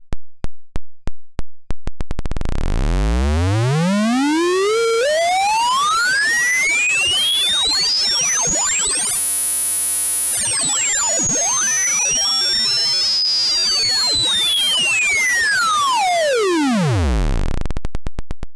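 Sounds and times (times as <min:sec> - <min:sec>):
Behringer Neutron synthesizer LFO aliasing: 0:02.4 - 0:09.3, 0:10.0 - 0:17.6.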